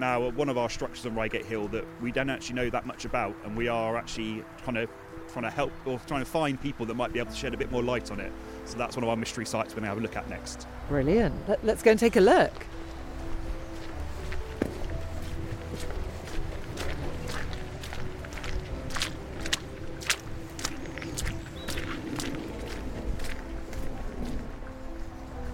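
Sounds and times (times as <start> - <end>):
speech: 0.0 - 12.8
soft outdoor background: 0.0 - 25.5
footsteps walking down a path on Reigate Hill: 12.5 - 25.5.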